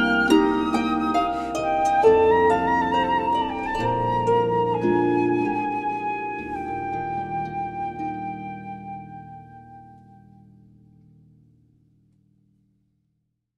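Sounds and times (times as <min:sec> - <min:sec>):
flute: 0:00.0 - 0:10.8
harp: 0:00.0 - 0:11.6.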